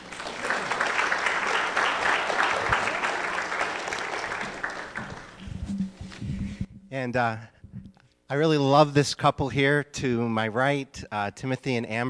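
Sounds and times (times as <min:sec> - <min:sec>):
audience clapping: 0:00.0 - 0:05.7
speech: 0:07.0 - 0:07.5, 0:08.3 - 0:12.0.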